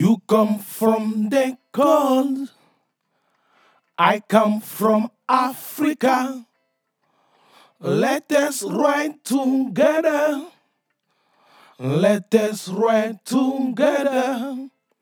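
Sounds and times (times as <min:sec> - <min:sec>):
vocal in A minor: 0:00.0 - 0:02.6, 0:04.0 - 0:06.4, 0:07.8 - 0:10.6, 0:11.8 - 0:14.7.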